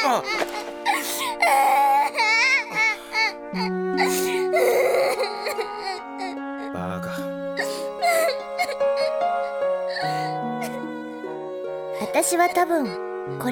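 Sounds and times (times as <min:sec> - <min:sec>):
speech: 0:00.0 - 0:00.7, 0:12.3 - 0:13.5
person crying and sobbing in an anime drama CD: 0:00.0 - 0:06.8, 0:07.6 - 0:10.9.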